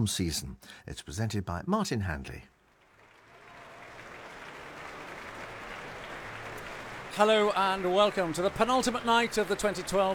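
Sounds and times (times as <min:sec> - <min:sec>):
speech: 0:00.0 - 0:02.5, 0:07.2 - 0:10.1
concert hall audience clapping: 0:02.6 - 0:10.1
large concert hall audience crowd noise: 0:03.3 - 0:10.1.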